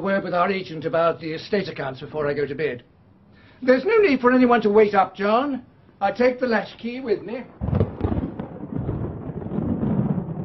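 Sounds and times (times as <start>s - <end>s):
speech: 0.0s - 3.0s, 3.6s - 7.7s
thunder clap: 7.3s - 10.4s.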